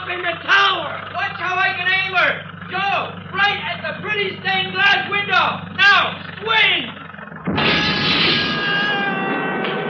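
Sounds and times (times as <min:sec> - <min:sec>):
speech: 0:00.1 - 0:07.0
shrill scream: 0:07.6 - 0:09.8.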